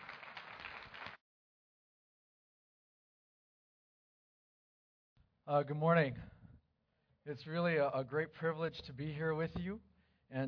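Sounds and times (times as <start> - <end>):
audience applause: 0.0 - 1.2
speech: 5.5 - 6.4, 7.2 - 10.4.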